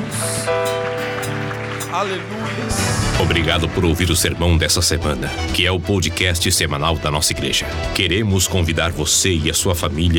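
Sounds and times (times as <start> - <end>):
keyboard chords: 0.0 - 7.9
audience applauding: 0.8 - 5.1
speech: 2.0 - 10.1.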